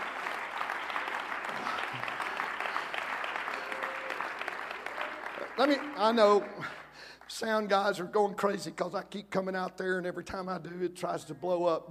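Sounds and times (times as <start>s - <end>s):
audience clapping hands: 0.0s - 8.0s
speech: 5.6s - 11.8s.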